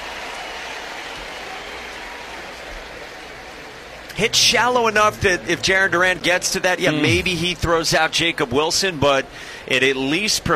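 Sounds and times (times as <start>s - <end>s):
baseball crowd cheering and applauding: 0.0s - 7.8s
speech: 4.2s - 10.5s.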